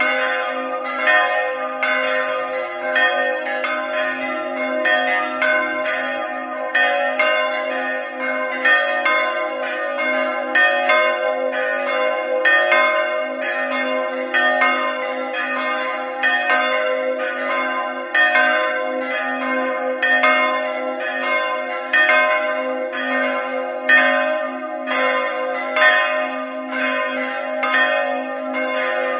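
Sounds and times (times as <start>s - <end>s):
bells ringing: 0.0s - 29.1s.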